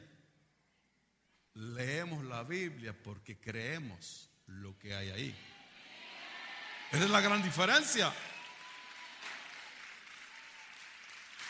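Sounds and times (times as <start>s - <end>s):
speech: 2.4s - 5.6s, 6.9s - 8.4s
audience applauding: 6.9s - 11.4s.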